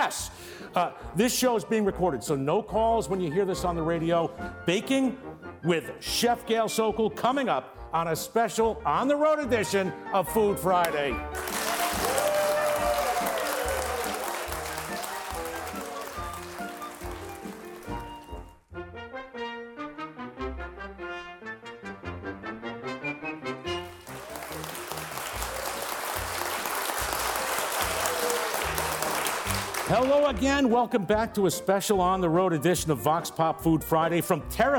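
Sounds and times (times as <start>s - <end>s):
speech: 0.0s - 11.6s, 30.1s - 34.7s
short musical interlude: 10.3s - 31.3s
live audience clapping at a radio show recording in Terrapin Restaurant, Rhinebeck, New York: 10.8s - 18.6s, 23.8s - 30.5s.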